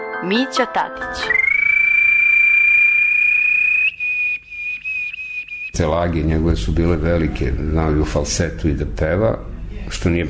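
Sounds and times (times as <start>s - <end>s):
speech: 0.2s - 1.4s, 5.8s - 10.2s
person whistling in imitation of a small bird: 1.0s - 5.8s.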